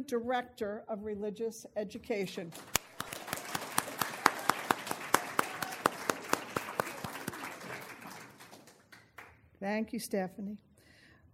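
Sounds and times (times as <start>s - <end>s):
speech: 0.0s - 2.9s, 9.6s - 10.7s
audience applause: 2.6s - 9.3s.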